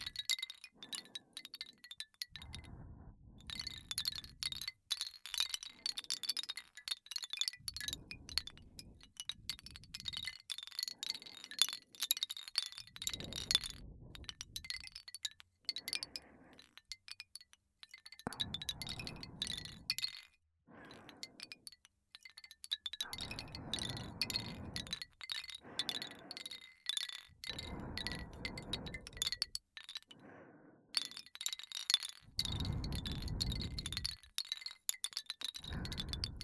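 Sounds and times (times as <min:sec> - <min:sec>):
person breathing: 0:00.0 - 0:04.6, 0:07.6 - 0:12.1, 0:12.7 - 0:15.1, 0:15.7 - 0:16.9, 0:18.2 - 0:21.8, 0:23.0 - 0:34.4, 0:35.6 - 0:36.4
wooden wind chime: 0:00.0 - 0:30.2, 0:31.0 - 0:36.4.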